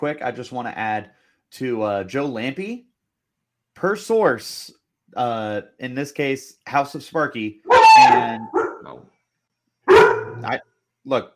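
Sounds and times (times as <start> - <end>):
speech: 0.0 - 2.9, 3.8 - 9.1, 10.4 - 11.3
excited pet dog barking: 7.7 - 8.9, 9.9 - 10.5.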